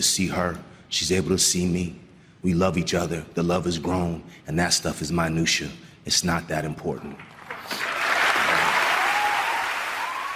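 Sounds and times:
speech: 0:00.0 - 0:07.8
audience applause: 0:07.2 - 0:10.3.

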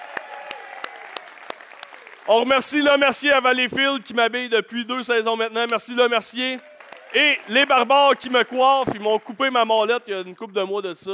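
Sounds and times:
audience applause: 0:00.0 - 0:03.0, 0:06.4 - 0:10.6
speech: 0:02.3 - 0:11.1.

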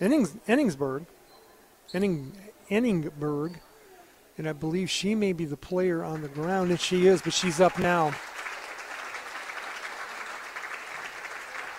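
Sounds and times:
speech: 0:00.0 - 0:01.2, 0:01.9 - 0:03.7, 0:04.4 - 0:08.3
crowd applause at basketball game: 0:06.1 - 0:11.7.

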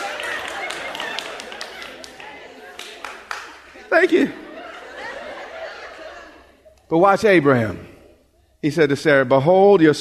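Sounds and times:
audience clapping: 0:00.0 - 0:04.3
laughter: 0:00.0 - 0:06.9
speech: 0:03.9 - 0:04.4, 0:06.9 - 0:07.9, 0:08.6 - 0:09.9.

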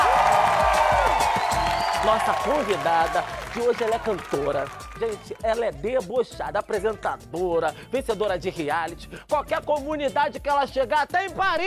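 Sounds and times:
studio audience clapping: 0:00.0 - 0:05.6
speech: 0:02.1 - 0:11.6.

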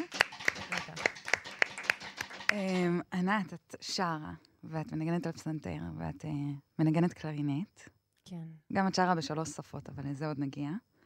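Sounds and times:
hand clapping in a steady rhythm: 0:00.0 - 0:02.9
speech: 0:02.5 - 0:10.9.

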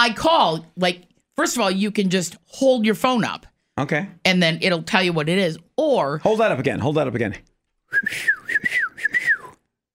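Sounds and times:
speech: 0:00.0 - 0:08.8
person whistling an imitation of a bird call: 0:07.9 - 0:09.6.

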